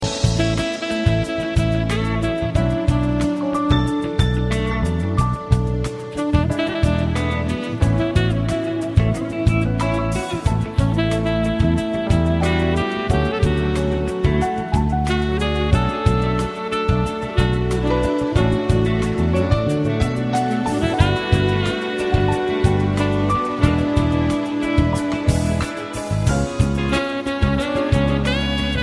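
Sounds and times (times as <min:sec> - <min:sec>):
saxophone: 0:00.0 - 0:28.8.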